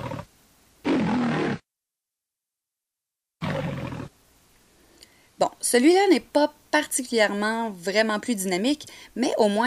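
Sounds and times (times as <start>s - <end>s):
lion roaring: 0.0s - 1.6s, 3.4s - 4.1s
speech: 5.6s - 9.6s.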